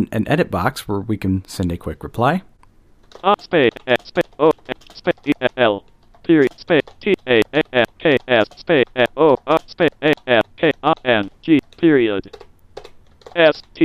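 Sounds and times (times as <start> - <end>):
speech: 0.0 - 2.5, 3.1 - 4.5, 5.1 - 12.4, 13.4 - 13.8
computer keyboard keys clicking as a reply is typed: 3.0 - 13.8
synthetic voice speaking: 3.2 - 12.3.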